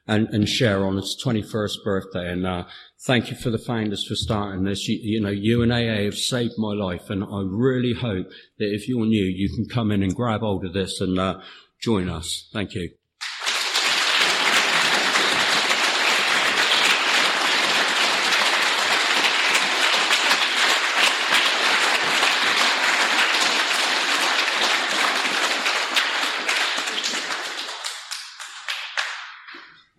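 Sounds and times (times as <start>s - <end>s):
speech: 0.1s - 13.0s
audience clapping: 13.2s - 29.8s.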